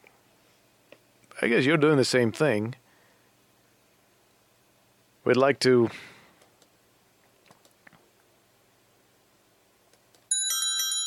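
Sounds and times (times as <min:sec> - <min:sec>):
speech: 0:01.4 - 0:02.8, 0:05.2 - 0:06.1
alarm clock ringing: 0:10.3 - 0:11.0.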